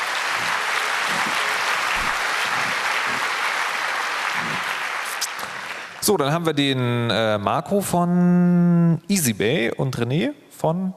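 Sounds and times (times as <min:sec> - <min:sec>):
audience applause: 0:00.0 - 0:06.2
speech: 0:06.1 - 0:10.9.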